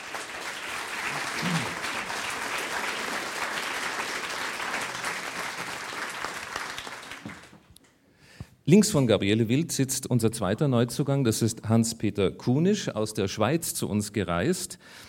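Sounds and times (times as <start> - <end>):
audience applause: 0.0 - 7.6
speech: 8.7 - 15.0.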